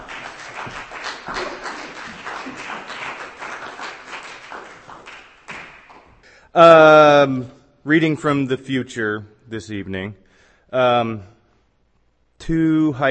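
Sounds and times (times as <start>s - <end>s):
audience applause at a reading: 0.0s - 6.2s
speech: 6.6s - 11.4s, 12.5s - 13.0s.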